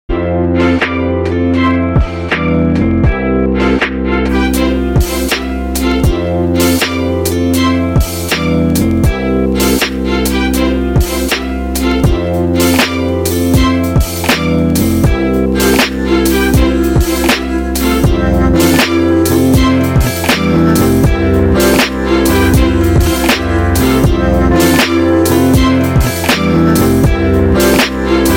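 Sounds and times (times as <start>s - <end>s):
chill study beats: 0.1s - 28.3s.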